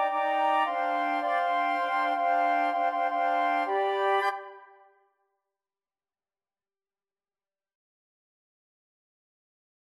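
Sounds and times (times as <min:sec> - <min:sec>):
flute choir: 0:00.0 - 0:04.9.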